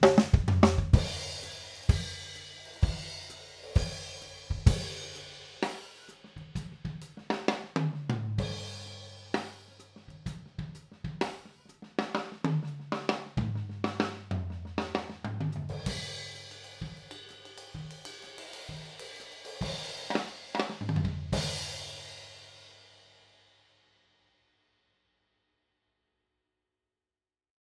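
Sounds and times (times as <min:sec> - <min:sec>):
drums through overhead microphones: 0:00.0 - 0:24.1.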